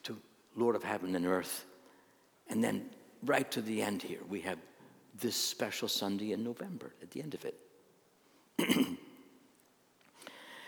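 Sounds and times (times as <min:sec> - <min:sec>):
speech: 0:00.0 - 0:01.7, 0:02.5 - 0:07.6, 0:08.6 - 0:09.0
preacher clearing his throat during a church sermon: 0:08.6 - 0:09.2.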